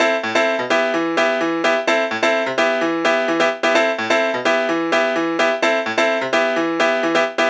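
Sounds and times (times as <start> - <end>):
melody: 0.0 - 7.4.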